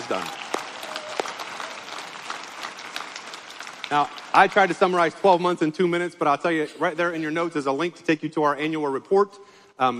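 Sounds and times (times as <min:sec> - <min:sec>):
church audience clapping in praise: 0:00.0 - 0:05.8
speech: 0:00.1 - 0:00.4, 0:03.9 - 0:09.9.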